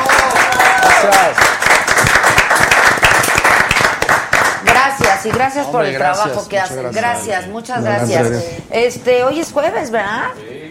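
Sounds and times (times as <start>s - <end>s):
applause: 0.0s - 5.5s
speech: 5.2s - 10.6s.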